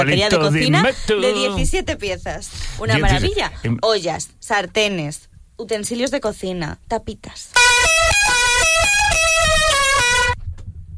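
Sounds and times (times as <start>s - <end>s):
speech: 0.0s - 8.2s
car horns honking in traffic jam: 7.6s - 10.4s.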